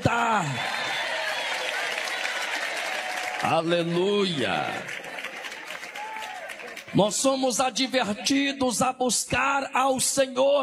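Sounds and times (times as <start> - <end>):
audience applause: 0.0 - 7.1
speech: 3.4 - 5.0, 6.9 - 10.6.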